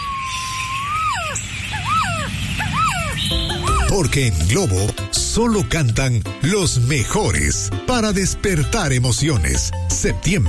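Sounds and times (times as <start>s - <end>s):
resplendent quetzal singing: 0.0s - 4.0s
speech: 3.9s - 10.4s.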